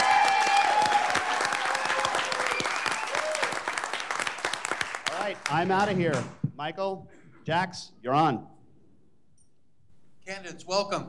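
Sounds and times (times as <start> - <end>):
audience applause for an introduced producer at a candidates' forum: 0.0 - 6.0
speech: 5.5 - 8.5, 10.3 - 11.0.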